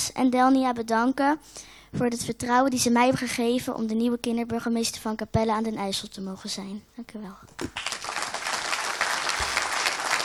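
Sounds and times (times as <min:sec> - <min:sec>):
speech: 0:00.2 - 0:08.1
audience applause: 0:07.6 - 0:10.2.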